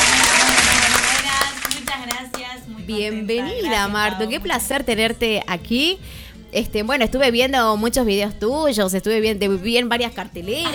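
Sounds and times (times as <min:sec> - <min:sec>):
applause sound effect: 0:00.0 - 0:02.5
speech: 0:02.9 - 0:10.7.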